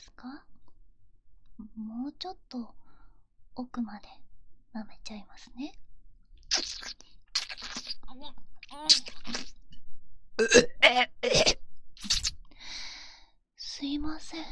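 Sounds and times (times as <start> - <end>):
speech: 0.2 - 0.5, 1.7 - 2.8, 3.6 - 5.8, 6.5 - 7.0, 8.1 - 9.6, 10.4 - 12.2, 13.8 - 14.5
burp: 10.4 - 11.6.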